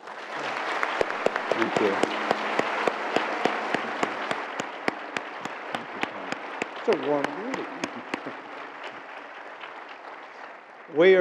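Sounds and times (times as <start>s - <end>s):
audience applauding at a Baylor University campus event: 0.0s - 11.1s
sharp claps: 0.0s - 11.1s
speech: 1.6s - 2.2s, 6.9s - 7.8s, 10.9s - 11.1s.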